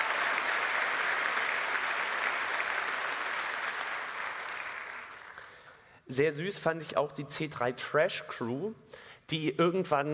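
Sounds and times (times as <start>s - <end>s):
audience applause: 0.0s - 5.6s
speech: 6.1s - 10.1s.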